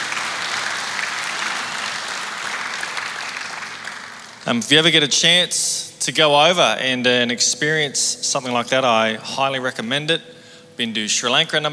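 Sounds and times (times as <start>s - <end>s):
audience applause: 0.0s - 4.6s
speech: 4.5s - 11.7s.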